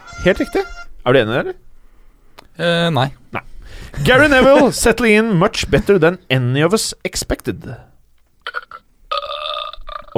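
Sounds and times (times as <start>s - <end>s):
speech: 0.2s - 1.7s, 2.6s - 7.9s
laughter: 4.0s - 4.9s
loud burp: 8.4s - 10.1s.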